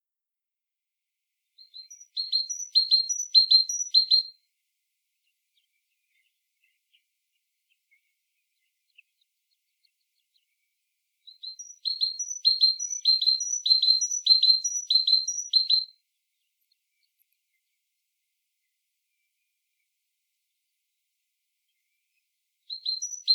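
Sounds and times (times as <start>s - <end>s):
great tit Parus major singing: 1.6s - 4.3s, 5.2s - 17.8s, 22.7s - 23.3s.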